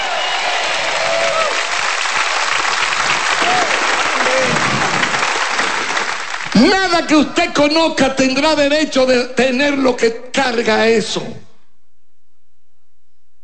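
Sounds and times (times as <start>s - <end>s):
audience applauding: 0.0s - 7.1s
speech: 7.0s - 11.4s.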